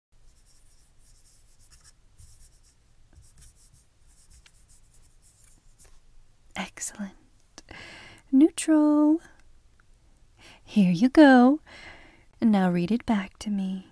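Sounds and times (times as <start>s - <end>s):
pen writing a handwritten message on a page held against someone's back: 0.3s - 5.6s
speech: 6.6s - 9.3s, 10.7s - 13.8s.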